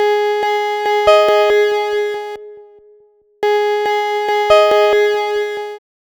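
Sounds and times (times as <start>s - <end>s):
synthesizer at 140 BPM in G sharp: 0.0s - 5.8s.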